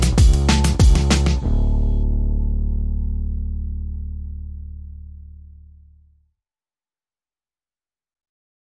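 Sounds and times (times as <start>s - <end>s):
drums: 0.0s - 1.4s
bass: 0.0s - 6.4s.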